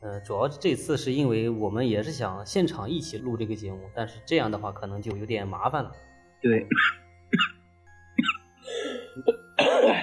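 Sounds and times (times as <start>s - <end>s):
speech: 0.1s - 7.5s, 9.2s - 10.0s
coughing: 6.6s - 7.6s, 8.2s - 10.0s.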